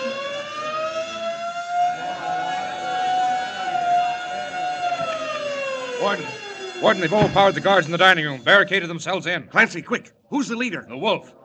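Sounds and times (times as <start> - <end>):
shrieking wail of the prison siren: 0.0 - 9.9
frantic prison alarm bells: 0.0 - 11.2
laughter: 0.0 - 11.4
speech: 6.0 - 11.4.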